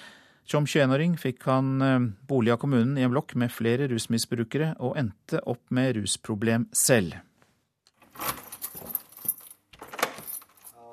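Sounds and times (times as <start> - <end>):
speech: 0.5 - 7.3
keys unlocking an apartment door: 8.0 - 10.9.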